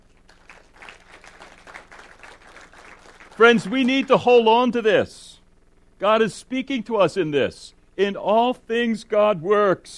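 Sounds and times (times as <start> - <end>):
audience clapping: 0.0 - 4.4
speech: 3.4 - 5.3, 6.0 - 9.9.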